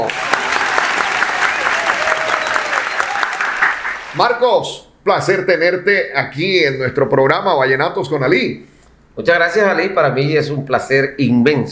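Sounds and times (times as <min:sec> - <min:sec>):
loud applause: 0:00.0 - 0:04.2
speech: 0:04.2 - 0:11.6.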